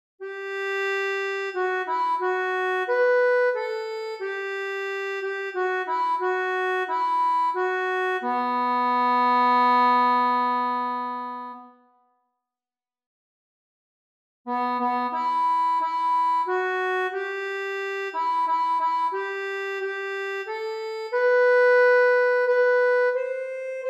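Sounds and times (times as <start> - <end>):
accordion: 0.2 - 12.0, 14.5 - 23.8.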